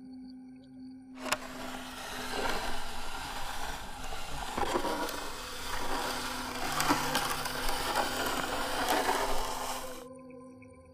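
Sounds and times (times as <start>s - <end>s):
fingernails scratching on a wooden wall: 1.2s - 10.0s.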